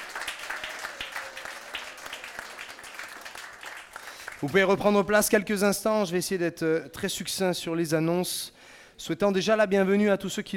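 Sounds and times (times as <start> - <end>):
audience applause: 0.0 - 4.7
speech: 4.4 - 10.5.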